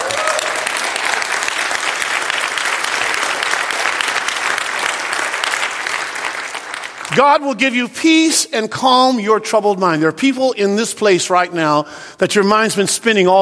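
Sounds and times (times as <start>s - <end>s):
audience applause: 0.0s - 7.2s
speech: 7.2s - 13.4s.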